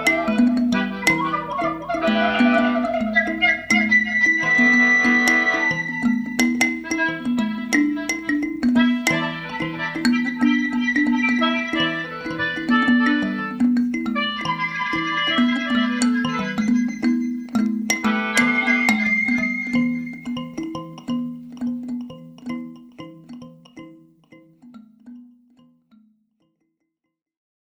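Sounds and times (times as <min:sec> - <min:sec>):
alto recorder: 0:00.0 - 0:20.6
melodica: 0:00.0 - 0:22.1
kalimba: 0:00.0 - 0:26.6.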